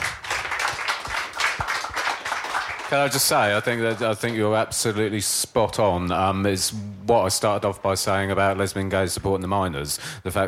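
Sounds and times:
crowd applauding: 0:00.0 - 0:04.6
speech: 0:02.9 - 0:10.4.

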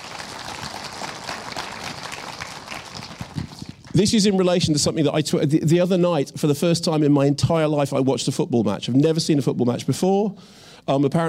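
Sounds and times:
audience round of applause: 0:00.0 - 0:04.0
speech: 0:04.0 - 0:11.2.

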